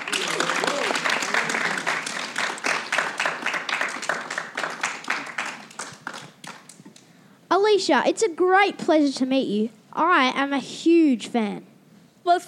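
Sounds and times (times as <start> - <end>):
roaring audience applause: 0.0 - 6.8
speech: 7.6 - 12.4.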